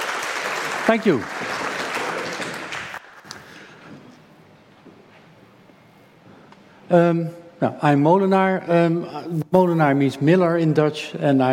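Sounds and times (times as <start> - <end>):
audience applause: 0.0 - 3.6
speech: 0.8 - 1.6, 6.9 - 11.5.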